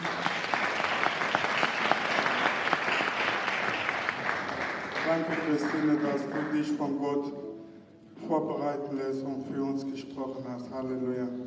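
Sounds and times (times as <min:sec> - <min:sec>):
congregation clapping at a church service: 0:00.0 - 0:07.0
speech: 0:05.2 - 0:07.4, 0:08.3 - 0:11.4.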